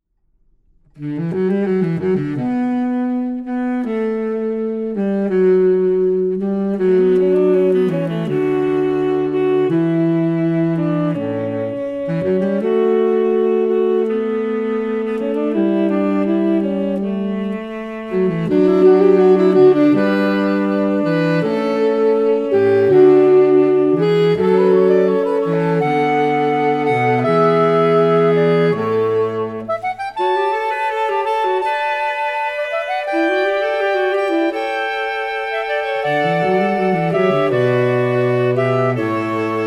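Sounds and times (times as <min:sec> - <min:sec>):
classical fugue: 0:00.9 - 0:39.6.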